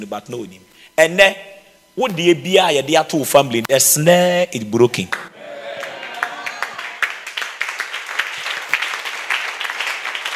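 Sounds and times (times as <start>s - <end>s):
speech: 0.0s - 5.3s
audience clapping: 5.1s - 10.3s.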